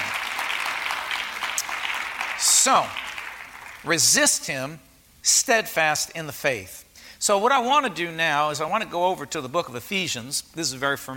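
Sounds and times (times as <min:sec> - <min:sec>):
crowd clapping: 0:00.0 - 0:04.0
speech: 0:02.6 - 0:03.0, 0:03.8 - 0:11.1.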